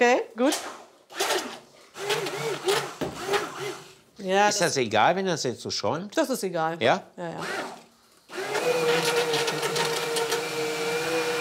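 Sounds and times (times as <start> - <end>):
speech: 0.0 - 0.8, 4.2 - 7.7
small electric kitchen mixer blending sugar mixture: 1.2 - 3.9, 7.4 - 11.3.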